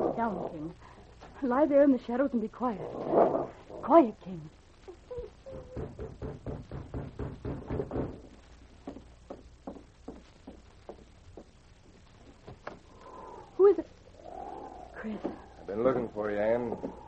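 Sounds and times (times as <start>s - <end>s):
speech: 0.2s - 4.6s, 15.0s - 17.0s
heavy footsteps approaching a cabin: 8.0s - 12.9s.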